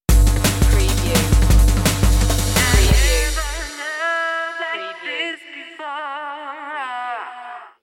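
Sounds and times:
deep pulse stinger: 0:00.1 - 0:03.7.

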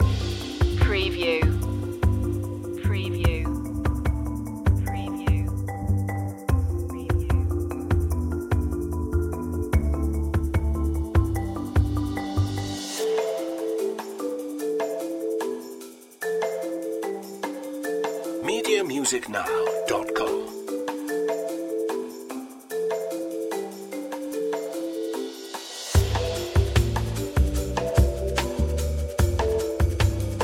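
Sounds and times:
music loop: 0:00.0 - 0:25.4, 0:26.0 - 0:30.4.

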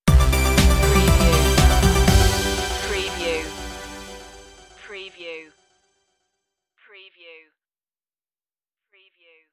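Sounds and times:
musical stinger: 0:00.1 - 0:05.8.

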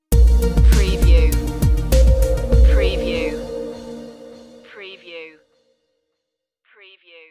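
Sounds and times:
space age stinger: 0:00.2 - 0:04.8.

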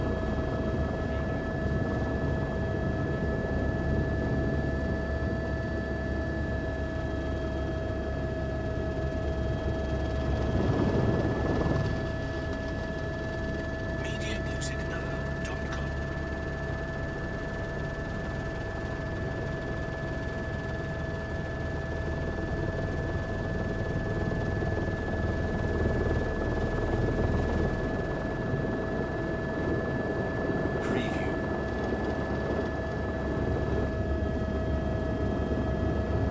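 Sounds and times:
helicopter flying: 0:00.0 - 0:36.3.

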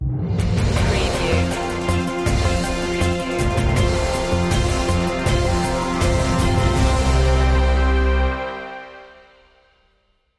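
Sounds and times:
informative news stinger: 0:00.7 - 0:08.2.

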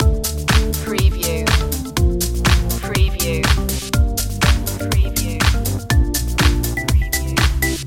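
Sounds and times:
Ibiza summer dance music loop: 0:00.0 - 0:07.8.

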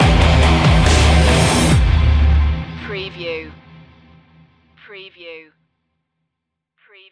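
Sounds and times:
dramatic music stinger: 0:00.0 - 0:04.6.

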